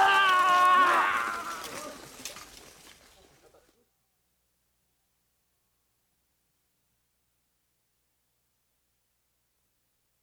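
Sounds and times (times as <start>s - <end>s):
war cry: 0.0s - 2.0s.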